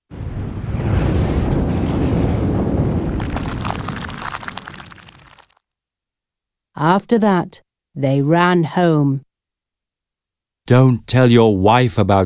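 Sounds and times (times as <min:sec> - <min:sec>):
thunder sound effect: 0:00.1 - 0:05.4
speech: 0:06.8 - 0:09.2, 0:10.7 - 0:12.2.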